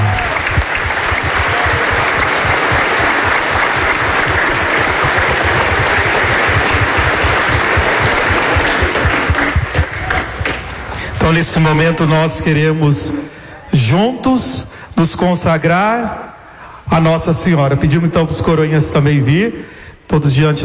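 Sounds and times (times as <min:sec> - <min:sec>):
applause: 0:00.0 - 0:10.6
speech: 0:11.3 - 0:16.2, 0:16.9 - 0:20.6.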